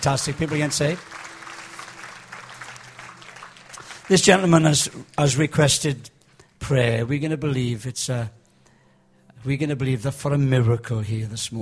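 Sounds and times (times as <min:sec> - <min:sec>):
speech: 0:00.0 - 0:01.3, 0:04.1 - 0:08.4, 0:09.4 - 0:11.6
audience clapping: 0:00.0 - 0:05.9.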